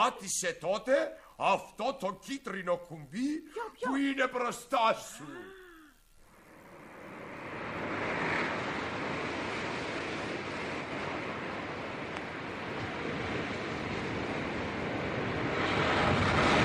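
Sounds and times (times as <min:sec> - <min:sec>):
speech: 0:00.0 - 0:05.6
sea waves: 0:06.7 - 0:16.6.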